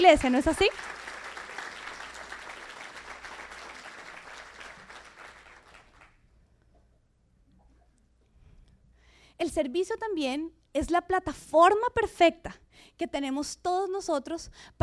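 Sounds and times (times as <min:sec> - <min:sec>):
speech: 0:00.0 - 0:01.0, 0:09.4 - 0:14.8
audience applauding: 0:00.2 - 0:06.2.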